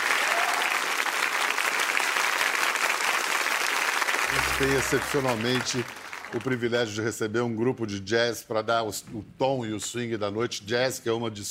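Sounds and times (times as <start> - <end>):
audience applause: 0.0 - 6.6
speech: 4.4 - 11.4.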